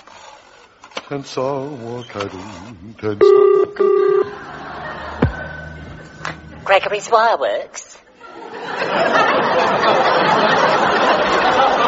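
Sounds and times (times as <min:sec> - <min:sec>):
speech: 0:01.1 - 0:05.2, 0:06.7 - 0:08.0
telephone number being dialed: 0:03.2 - 0:04.3
laughter: 0:04.2 - 0:06.6, 0:08.1 - 0:11.8.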